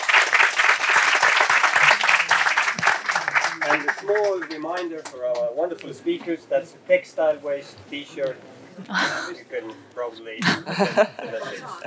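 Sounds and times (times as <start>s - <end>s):
crowd applauding: 0.0s - 5.5s
speech: 3.7s - 11.8s
laughter: 8.8s - 9.4s, 10.4s - 11.8s.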